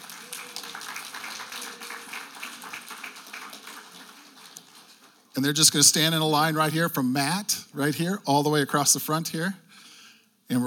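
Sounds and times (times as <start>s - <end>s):
audience applause: 0.0s - 5.3s
speech: 5.4s - 9.6s, 10.5s - 10.6s.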